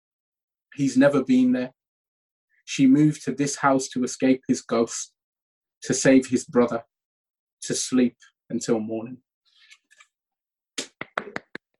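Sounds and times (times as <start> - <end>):
speech: 0.8 - 1.8, 2.7 - 5.2, 5.8 - 6.9, 7.6 - 9.2
small hand claps: 10.8 - 11.7.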